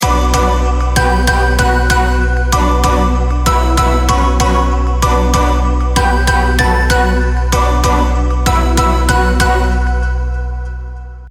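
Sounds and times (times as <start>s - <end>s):
hip-hop trap bounce beat: 0.0s - 10.8s
piano: 0.0s - 11.2s.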